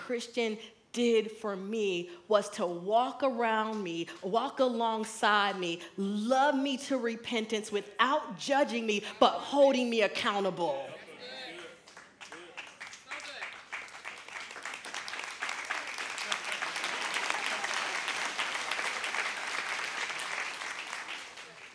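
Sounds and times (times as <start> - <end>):
speech: 0.1 - 10.9
audience applause: 11.4 - 21.7.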